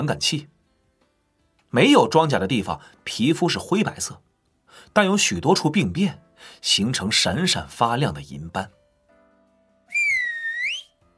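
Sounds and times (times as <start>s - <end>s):
speech: 0.0s - 0.5s, 1.7s - 8.8s
whistle: 9.9s - 11.0s.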